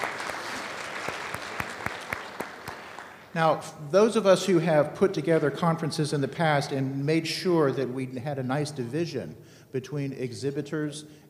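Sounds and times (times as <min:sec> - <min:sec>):
audience applause: 0:00.0 - 0:03.3
speech: 0:03.4 - 0:11.2.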